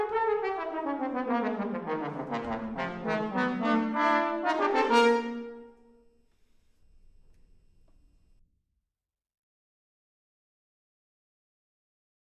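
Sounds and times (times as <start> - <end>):
trombone: 0.0 - 6.0.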